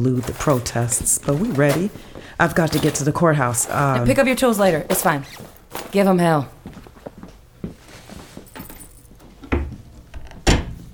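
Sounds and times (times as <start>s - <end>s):
speech: 0.0s - 6.8s
door: 9.4s - 10.8s.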